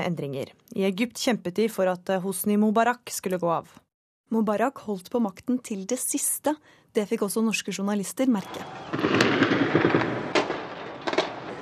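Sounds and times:
speech: 0:00.0 - 0:10.0
street unrest heard from a hotel room: 0:08.4 - 0:11.6
gunfire heard from a hotel room: 0:08.6 - 0:11.6.

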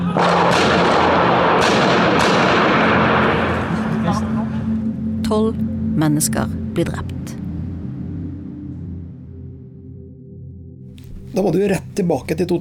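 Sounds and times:
gunfire from attackers shooting wildly: 0:00.2 - 0:04.3
speech: 0:05.3 - 0:07.4, 0:11.4 - 0:12.6.

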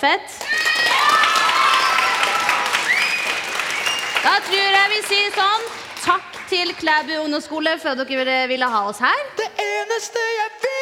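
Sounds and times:
speech: 0:00.0 - 0:01.3, 0:04.2 - 0:10.7
audience applause: 0:00.4 - 0:06.7
high whistles and cheers: 0:00.5 - 0:04.6.

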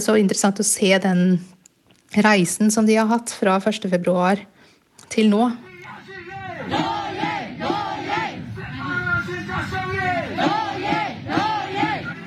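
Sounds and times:
speech: 0:00.0 - 0:05.7
crowd chanting a battle cry: 0:05.6 - 0:12.2.

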